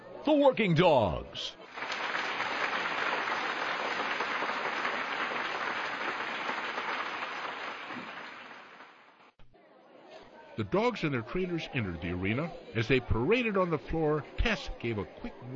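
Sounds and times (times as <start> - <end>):
speech: 0.2 - 1.6, 10.6 - 15.5
crowd applause: 1.6 - 9.3.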